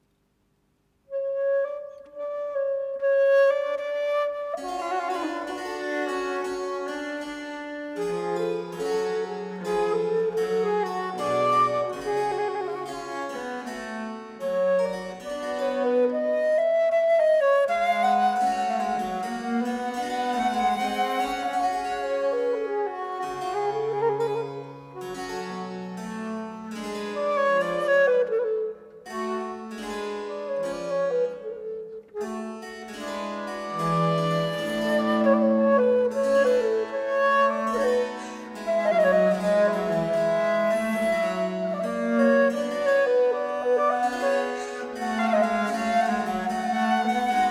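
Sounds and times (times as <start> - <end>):
sonata in G minor: 0.0 - 47.4.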